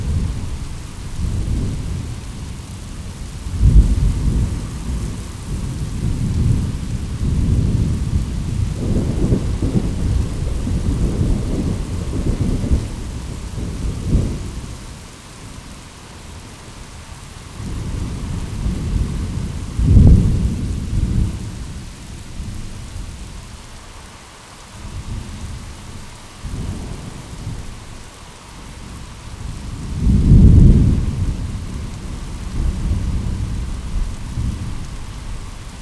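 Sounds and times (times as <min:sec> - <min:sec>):
thunder in a thunderstorm: 0:00.0 - 0:14.8, 0:17.6 - 0:23.2, 0:29.4 - 0:35.8.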